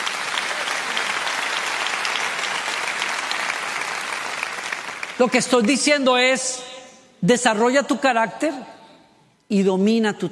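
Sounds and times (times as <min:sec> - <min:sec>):
audience applause: 0:00.0 - 0:05.5
speech: 0:05.2 - 0:08.8, 0:09.5 - 0:10.2.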